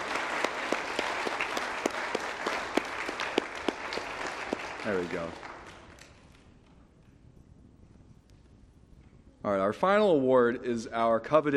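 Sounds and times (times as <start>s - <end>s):
audience applause: 0.0s - 6.3s
sharp loud claps: 0.0s - 6.5s
speech: 4.8s - 5.5s, 9.4s - 11.5s.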